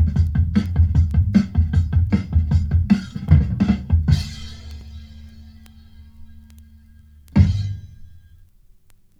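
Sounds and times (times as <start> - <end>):
polluted drums: 0.0 - 8.5.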